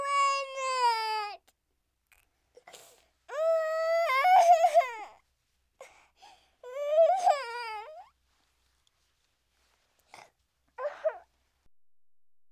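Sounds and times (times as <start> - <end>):
small child crying: 0.0 - 1.4, 3.3 - 5.2, 6.6 - 8.1, 10.8 - 11.3.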